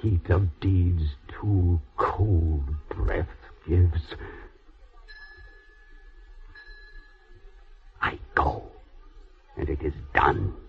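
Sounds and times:
speech: 0:00.0 - 0:04.4, 0:09.6 - 0:10.6
bell ringing: 0:05.0 - 0:07.9.

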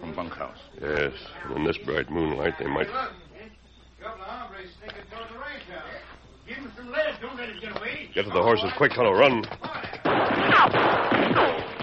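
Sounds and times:
speech: 0:00.2 - 0:03.2, 0:06.5 - 0:09.8, 0:10.4 - 0:11.6
gunshots: 0:10.0 - 0:11.8.

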